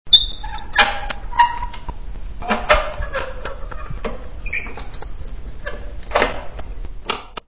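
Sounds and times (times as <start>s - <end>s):
squeak: 0.1s - 1.8s, 3.0s - 5.8s.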